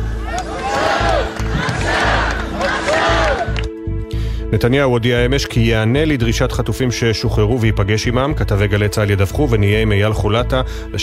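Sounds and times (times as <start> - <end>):
large protest crowd chanting a rhythmic slogan in unison: 0.2 - 3.6
speech: 4.5 - 11.0.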